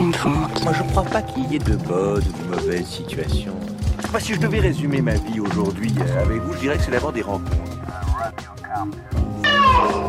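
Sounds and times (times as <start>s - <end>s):
speech: 0.2s - 10.0s
person imitating a cat meowing: 9.4s - 10.0s.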